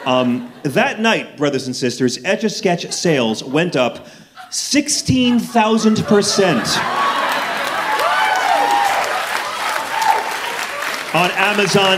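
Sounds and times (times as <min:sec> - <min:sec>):
laughter: 0:00.0 - 0:01.0, 0:02.6 - 0:09.2
speech: 0:00.0 - 0:07.2, 0:11.1 - 0:11.9
audience clapping at a live talk: 0:06.8 - 0:11.9.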